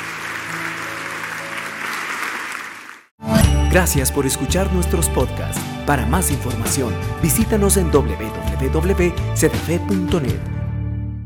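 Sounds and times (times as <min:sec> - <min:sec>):
loud applause: 0:00.0 - 0:03.1
speech: 0:03.7 - 0:10.5.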